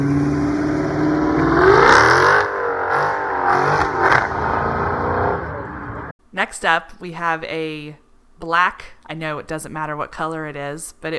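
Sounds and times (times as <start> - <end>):
Chrysler 300 sedan engine revving: 0.0 - 6.1
speech: 6.5 - 11.1.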